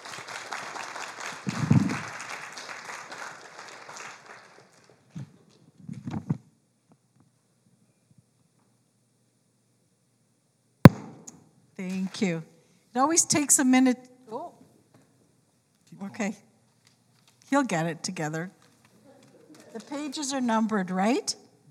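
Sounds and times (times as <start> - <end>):
audience applause welcoming guests at a church gathering: 0.0 - 5.5
speech: 12.2 - 14.1, 16.2 - 16.5, 17.6 - 18.6, 20.0 - 21.4.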